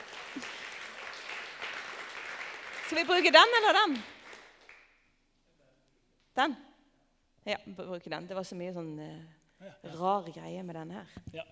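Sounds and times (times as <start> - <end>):
audience applause: 0.0 - 4.8
speech: 2.9 - 4.1, 6.4 - 6.6, 7.4 - 11.5.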